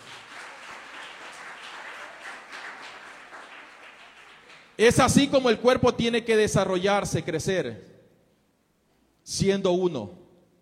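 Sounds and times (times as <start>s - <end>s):
audience applause: 0.0s - 4.8s
speech: 4.8s - 7.9s, 9.3s - 10.2s.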